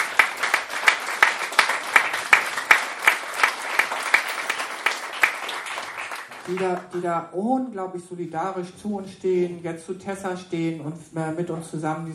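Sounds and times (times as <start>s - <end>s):
audience applause: 0.0s - 6.9s
speech: 6.5s - 12.1s.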